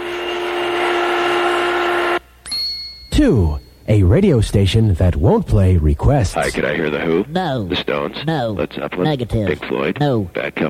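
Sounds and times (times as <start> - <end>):
vacuum cleaner running: 0.0 - 2.2
speech: 3.2 - 10.6.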